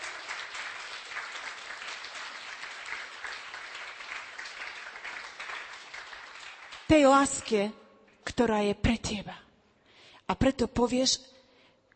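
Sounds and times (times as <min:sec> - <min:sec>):
audience applauding: 0:00.0 - 0:06.9
speech: 0:06.9 - 0:09.4, 0:10.3 - 0:11.4.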